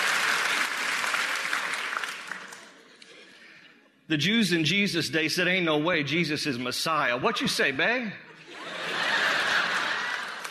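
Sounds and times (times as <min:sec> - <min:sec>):
crowd applauding: 0:00.0 - 0:03.0, 0:09.0 - 0:10.5
speech: 0:04.1 - 0:08.3
laughter: 0:08.3 - 0:10.5.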